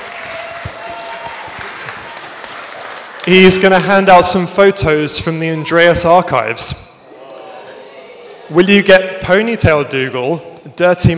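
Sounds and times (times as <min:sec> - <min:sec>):
applause: 0:00.0 - 0:04.0
speech: 0:03.2 - 0:06.9, 0:08.5 - 0:11.1.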